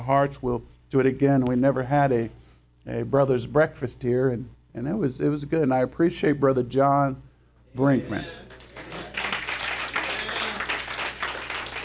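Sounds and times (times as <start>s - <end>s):
speech: 0.0s - 8.6s
women in an audience clapping: 8.5s - 11.8s.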